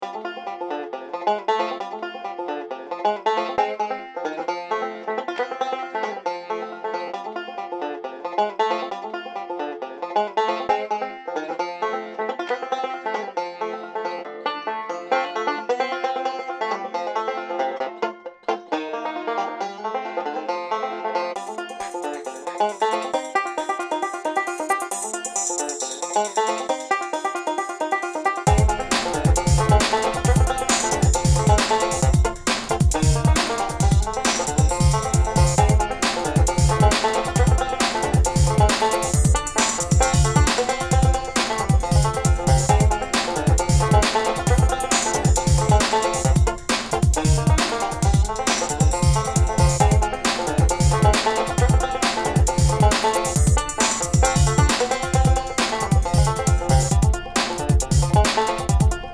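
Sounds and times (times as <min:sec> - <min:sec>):
country bounce music: 0:00.0 - 0:59.1.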